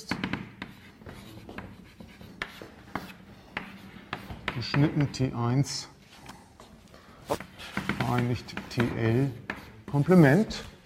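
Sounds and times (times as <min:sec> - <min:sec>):
pen scratching while writing a definition by hand: 0:00.1 - 0:05.2, 0:07.3 - 0:10.4
speech: 0:04.6 - 0:05.9, 0:08.1 - 0:10.7.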